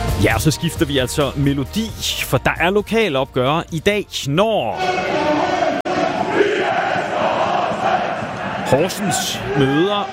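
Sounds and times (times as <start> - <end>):
speech: 0.2 - 5.5, 8.7 - 10.1
football supporters chanting in their stadium: 4.7 - 10.1.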